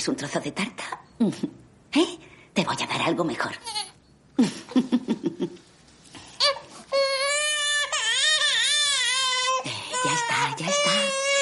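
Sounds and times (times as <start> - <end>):
speech: 0.0 - 3.8, 4.4 - 5.6
baby crying: 6.4 - 11.4.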